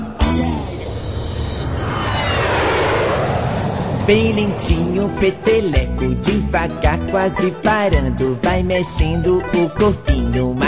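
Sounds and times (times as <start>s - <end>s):
airplane taking off sound effect: 0.1s - 7.2s
speech: 4.1s - 10.6s.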